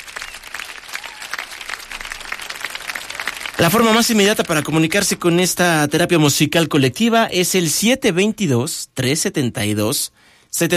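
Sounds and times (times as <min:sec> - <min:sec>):
applause: 0:00.0 - 0:05.1
speech: 0:03.6 - 0:10.7.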